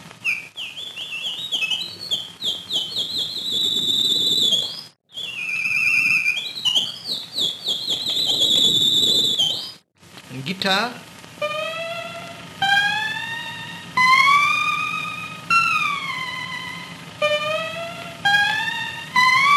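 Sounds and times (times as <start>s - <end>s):
synthesized bird sound effect: 0.2s - 9.8s, 11.4s - 19.5s
speech: 10.6s - 11.1s.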